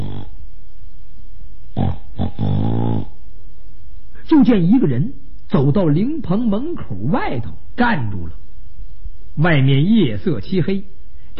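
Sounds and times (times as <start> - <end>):
person imitating snoring: 0.0 - 0.4, 1.8 - 3.2
speech: 4.4 - 8.4, 9.4 - 11.3.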